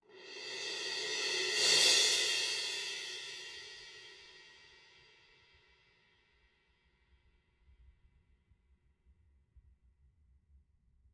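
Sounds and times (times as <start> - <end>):
cymbal: 0.0 - 6.0.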